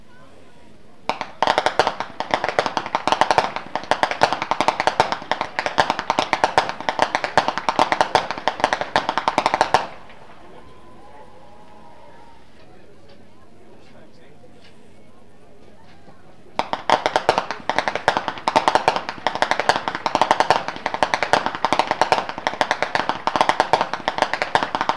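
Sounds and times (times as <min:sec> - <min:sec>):
whip cracking in Flachgau: 0:01.1 - 0:12.1, 0:16.6 - 0:24.9.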